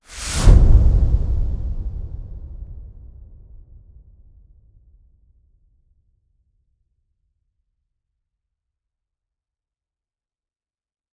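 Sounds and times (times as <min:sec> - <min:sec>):
swoosh: 0:00.0 - 0:03.7
big impact: 0:00.1 - 0:04.1.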